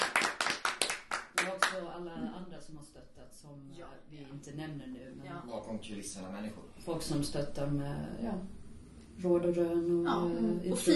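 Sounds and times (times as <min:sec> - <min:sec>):
small applause: 0:00.0 - 0:01.8
speech: 0:02.1 - 0:08.6, 0:09.2 - 0:10.9.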